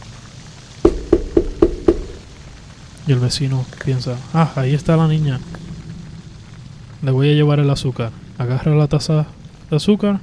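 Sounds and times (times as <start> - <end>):
girl knocking on a door: 0.9 - 2.2
speech: 3.1 - 5.7, 7.0 - 10.2.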